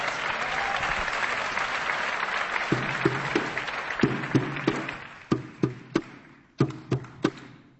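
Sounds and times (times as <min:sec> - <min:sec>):
crowd applause: 0:00.0 - 0:05.4
sharp evenly spaced claps: 0:00.0 - 0:07.6.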